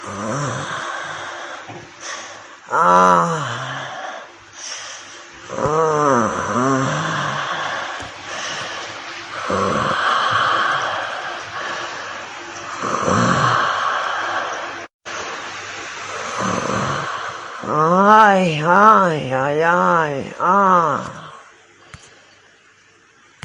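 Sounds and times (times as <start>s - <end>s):
person moaning: 0.0s - 1.6s, 2.7s - 4.3s, 5.5s - 8.1s, 9.4s - 11.7s, 12.8s - 14.6s, 16.2s - 21.5s.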